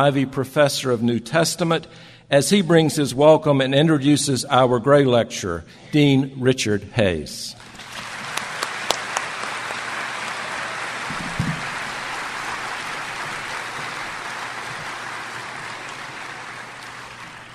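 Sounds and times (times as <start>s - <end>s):
speech: 0.0s - 7.6s
audience applause welcoming a divinity school dean at a lecture: 7.6s - 17.5s.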